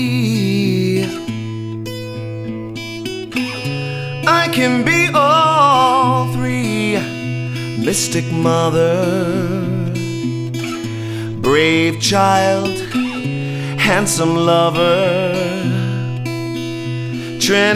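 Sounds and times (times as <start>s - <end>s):
music without drums: 0.0s - 17.7s.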